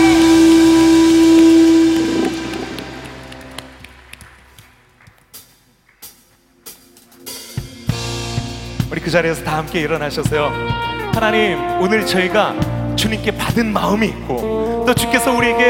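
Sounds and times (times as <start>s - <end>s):
audience applause: 0.0s - 6.1s
speech: 9.2s - 15.6s.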